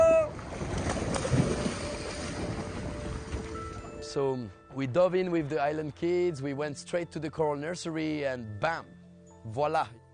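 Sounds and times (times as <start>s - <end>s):
waves splashing against the boat hull: 0.0s - 4.0s
boat engine rumble on open water: 0.0s - 5.5s
speech: 4.2s - 10.0s.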